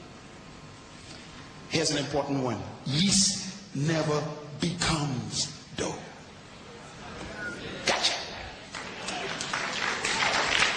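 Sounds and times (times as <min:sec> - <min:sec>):
speech: 0:01.7 - 0:06.1
audience clapping at a church sermon: 0:07.9 - 0:10.7.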